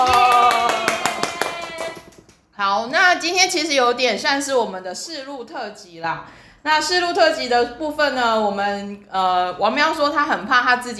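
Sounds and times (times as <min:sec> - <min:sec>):
hand clapping: 0:00.0 - 0:02.5
speech: 0:02.6 - 0:10.9.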